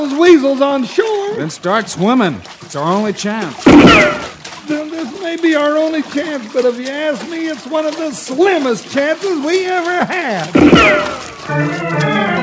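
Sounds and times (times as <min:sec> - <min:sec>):
speech: 0:00.0 - 0:12.3
booming call of the prairie chicken: 0:03.7 - 0:04.4, 0:10.6 - 0:11.4.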